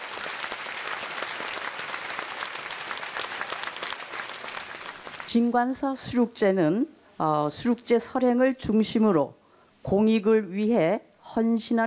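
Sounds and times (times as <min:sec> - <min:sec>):
audience applause welcoming a speaker: 0:00.0 - 0:05.3
speech: 0:05.3 - 0:11.8.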